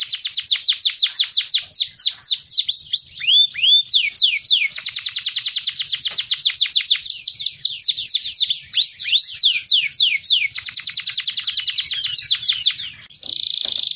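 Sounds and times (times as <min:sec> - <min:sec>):
canary singing rattling trills and swooping whistles: 0:00.0 - 0:13.9.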